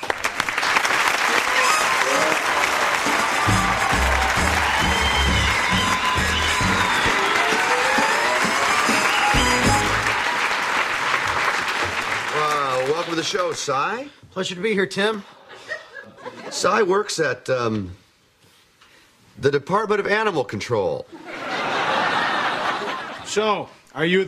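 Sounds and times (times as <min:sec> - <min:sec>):
Tool Time studio audience applauding a guest: 0:00.0 - 0:14.0
speech: 0:13.2 - 0:15.4, 0:16.6 - 0:18.0, 0:19.4 - 0:21.2, 0:23.3 - 0:24.2
laughter: 0:15.5 - 0:16.8, 0:21.2 - 0:23.3.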